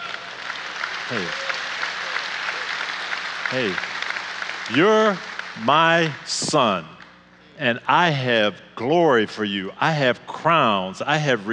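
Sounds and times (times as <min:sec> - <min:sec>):
audience applause: 0:00.0 - 0:06.8
voice calling: 0:01.1 - 0:01.4
speech: 0:01.1 - 0:01.5, 0:03.5 - 0:03.9, 0:04.7 - 0:07.0, 0:07.6 - 0:11.5.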